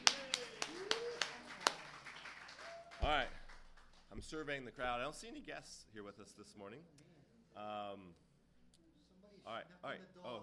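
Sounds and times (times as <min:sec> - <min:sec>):
sparse hand claps from an audience at a morning gathering: 0:00.0 - 0:04.1
speech: 0:04.2 - 0:07.0, 0:07.6 - 0:08.2, 0:09.4 - 0:10.4.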